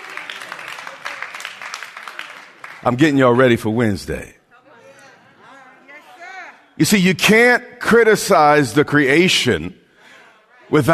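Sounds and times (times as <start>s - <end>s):
few people clapping: 0.0s - 3.3s
speech: 2.8s - 4.4s, 6.8s - 9.8s, 10.7s - 10.9s.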